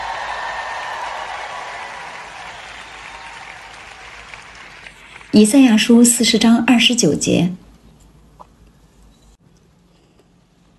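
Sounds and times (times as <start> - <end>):
audience cheering and clapping: 0.0 - 5.3
speech: 5.4 - 7.6.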